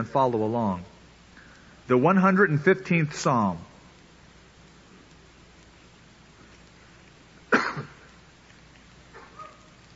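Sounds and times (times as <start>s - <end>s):
speech: 0.0s - 0.9s, 1.9s - 3.7s
sneeze: 7.5s - 8.1s.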